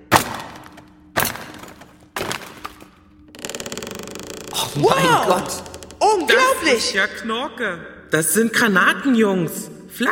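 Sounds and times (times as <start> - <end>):
hammer and chisel prying open wooden crate: 0.0 - 3.0
crate wood creaking and clicking as it gives way: 0.0 - 6.6
speech: 4.6 - 10.1.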